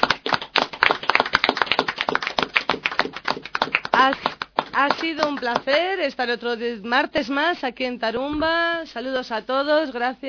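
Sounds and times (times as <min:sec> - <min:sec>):
group of people applauding: 0:00.0 - 0:05.9
speech: 0:04.0 - 0:10.2.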